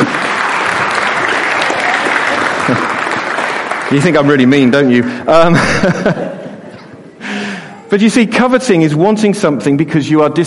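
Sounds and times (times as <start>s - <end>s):
crowd clapping: 0.0s - 5.1s
speech: 3.9s - 6.4s, 7.9s - 10.4s
laughter: 5.3s - 7.7s.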